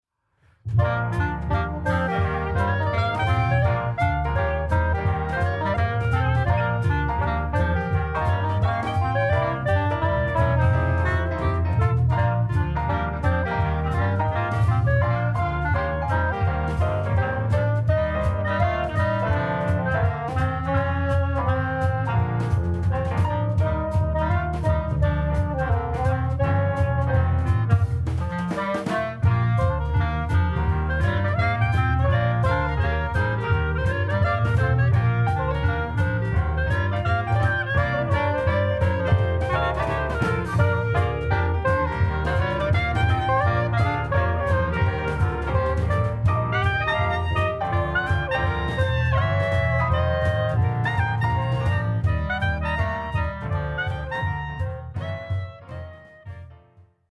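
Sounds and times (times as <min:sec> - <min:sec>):
jazz music: 0:00.6 - 0:57.1.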